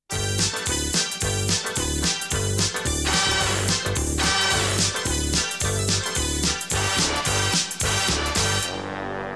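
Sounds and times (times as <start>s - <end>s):
jingle: 0.1s - 9.2s.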